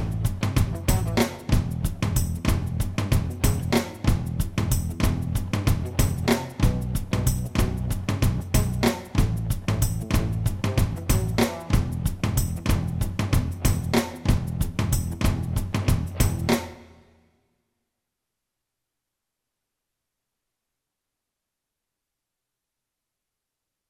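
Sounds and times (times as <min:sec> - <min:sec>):
rock and roll rhythm music in E: 0:00.0 - 0:17.0.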